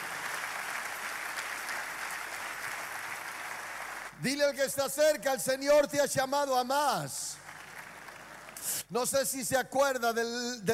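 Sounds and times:
audience applause: 0:00.0 - 0:04.2, 0:07.4 - 0:08.6
speech: 0:04.2 - 0:07.4, 0:08.9 - 0:10.7.

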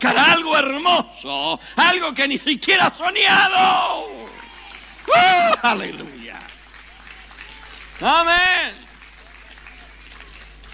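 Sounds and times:
speech: 0:01.0 - 0:04.0, 0:05.1 - 0:06.2, 0:08.0 - 0:08.8
crowd applause: 0:03.5 - 0:10.7.

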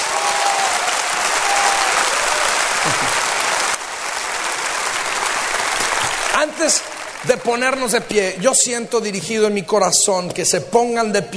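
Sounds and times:
audience applauding: 0:00.0 - 0:08.9
speech: 0:06.4 - 0:11.3.

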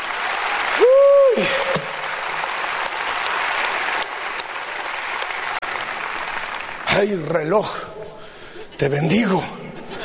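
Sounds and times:
loud crowd applause: 0:00.0 - 0:07.6
speech: 0:07.0 - 0:07.9, 0:08.8 - 0:09.6.

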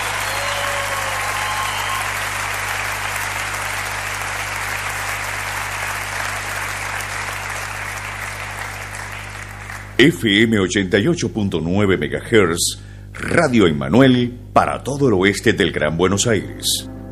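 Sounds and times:
audience applause: 0:00.0 - 0:10.0
speech: 0:10.0 - 0:17.0.

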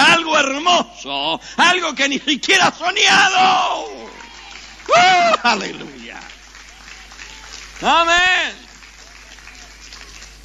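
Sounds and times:
speech: 0:00.8 - 0:03.9, 0:04.8 - 0:06.3, 0:07.8 - 0:08.6
audience applause: 0:03.2 - 0:10.4.

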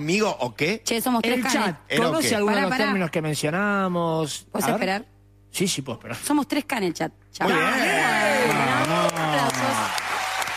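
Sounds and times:
speech: 0:00.0 - 0:08.7
applause: 0:08.3 - 0:10.5.

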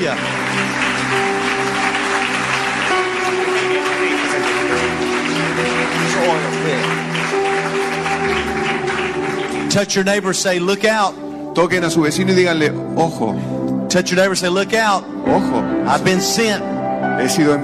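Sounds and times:
speech: 0:00.0 - 0:01.3, 0:06.2 - 0:07.4, 0:09.8 - 0:17.6
audience applauding: 0:00.0 - 0:11.0.

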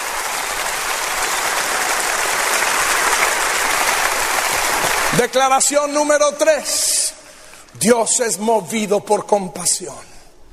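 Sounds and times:
crowd applause: 0:00.0 - 0:05.5
speech: 0:05.2 - 0:07.0, 0:07.8 - 0:10.2.

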